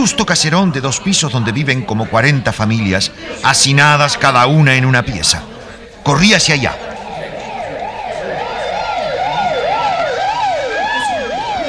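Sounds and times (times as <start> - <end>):
speech: 0.0 - 7.0
ambulance siren: 6.4 - 11.6.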